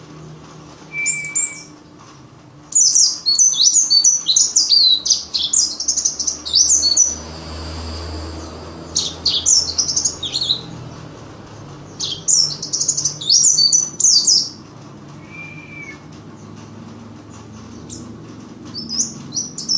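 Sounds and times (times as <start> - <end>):
steady low hum: 0.0 - 19.7
white-eye twittering: 0.9 - 1.7, 2.8 - 7.2, 8.9 - 10.7, 11.9 - 14.6, 15.2 - 16.1, 18.7 - 19.7.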